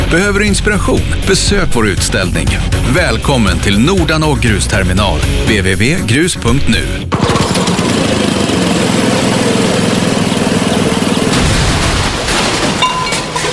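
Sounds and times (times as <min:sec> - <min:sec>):
speech: 0:00.1 - 0:08.4
unserviced small garden-machine engine running: 0:07.1 - 0:11.4
garden-machine engine sputtering with irregular pops: 0:07.1 - 0:13.5.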